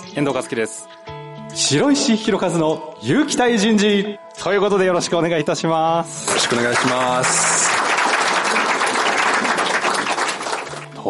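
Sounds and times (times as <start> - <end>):
speech: 0.2 - 7.6
audience applause: 6.3 - 11.0.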